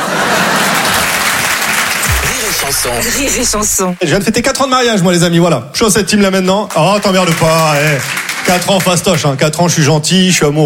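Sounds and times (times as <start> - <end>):
large audience applause: 0.0 - 3.8, 6.7 - 9.2
speech: 2.8 - 10.6.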